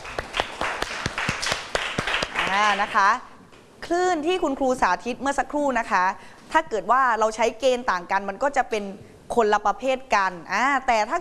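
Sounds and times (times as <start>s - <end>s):
small group clapping in a classroom: 0.0s - 3.2s
speech: 2.5s - 11.1s.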